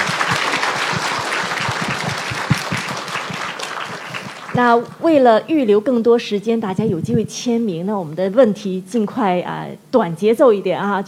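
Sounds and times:
audience applause: 0.0s - 4.7s
speech: 4.6s - 11.0s.

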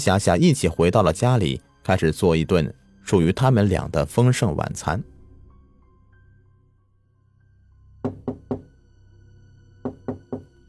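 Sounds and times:
speech: 0.0s - 5.1s
knocking on a door: 8.0s - 8.8s, 9.8s - 10.6s.

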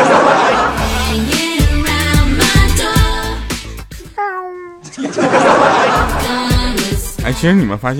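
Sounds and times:
laughter-like sounds: 0.0s - 0.8s, 4.8s - 6.4s
busy rhythmic music: 0.1s - 4.2s, 4.9s - 7.9s
high cat meow: 4.2s - 4.8s
speech: 7.3s - 7.9s.

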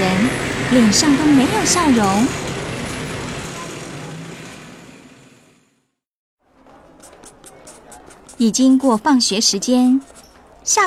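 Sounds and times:
street traffic with buses, cars and motorbikes: 0.0s - 10.8s
speech: 0.7s - 2.5s, 8.4s - 10.8s.

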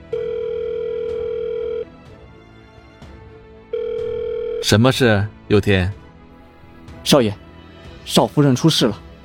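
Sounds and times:
telephone ringback tone: 0.0s - 1.9s, 3.7s - 4.7s
speech: 4.6s - 6.0s, 7.0s - 7.4s, 8.0s - 9.0s.

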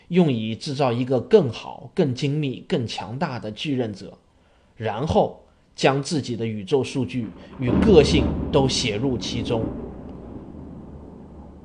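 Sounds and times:
speech: 0.1s - 4.2s, 4.8s - 9.8s
low rolling rumble of thunder: 6.8s - 11.6s.

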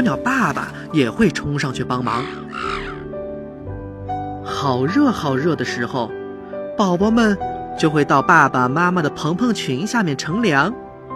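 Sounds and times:
speech: 0.0s - 2.9s, 4.6s - 6.2s, 6.8s - 10.8s
crow cawing: 2.0s - 3.2s.

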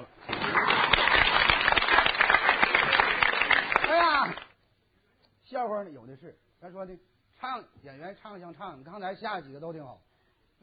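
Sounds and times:
weak audience applause: 0.0s - 4.6s
speech: 5.6s - 10.6s.

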